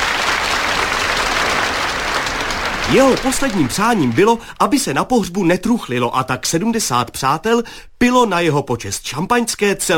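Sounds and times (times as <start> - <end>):
audience applause: 0.0 - 5.0
speech: 2.9 - 9.9.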